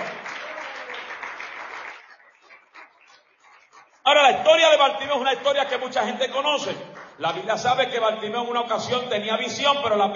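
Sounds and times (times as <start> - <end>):
audience applause: 0.0 - 3.8
speech: 4.3 - 10.1.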